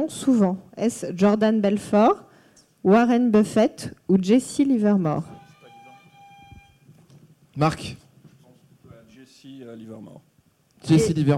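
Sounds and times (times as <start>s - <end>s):
speech: 0.0s - 5.3s, 7.6s - 8.0s, 9.5s - 11.3s
game show buzzer: 5.2s - 6.9s.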